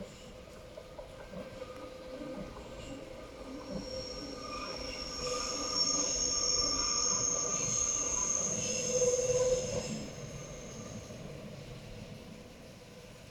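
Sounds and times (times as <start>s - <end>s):
Himmelstreppe train rolling past along the Wienerbruck reservoir: 0.0s - 13.2s
train wheel squeal: 3.6s - 11.0s.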